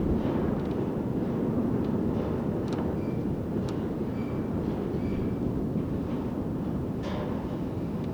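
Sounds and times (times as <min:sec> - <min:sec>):
ambience wind: 0:00.0 - 0:08.1.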